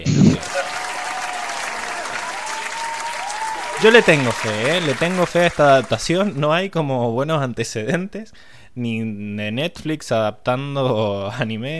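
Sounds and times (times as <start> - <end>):
laughter: 0.2 - 6.4
soundboard canned applause effect: 0.3 - 6.7
speech: 3.8 - 11.7.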